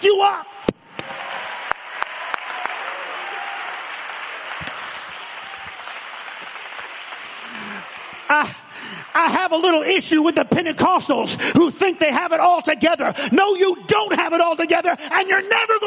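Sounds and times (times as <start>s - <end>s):
speech: 0.0s - 0.6s, 8.3s - 8.6s, 9.2s - 15.8s
audience clapping: 0.8s - 10.2s.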